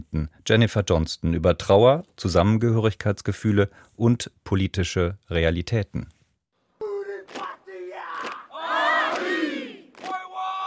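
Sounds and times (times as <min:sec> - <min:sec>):
speech: 0:00.0 - 0:06.2
soldiers chanting a haka: 0:06.8 - 0:10.6.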